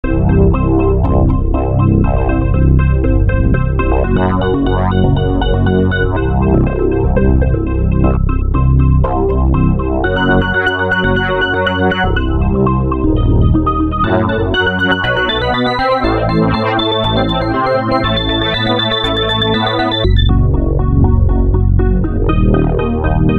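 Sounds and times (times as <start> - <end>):
trance music: 0.0 - 23.3.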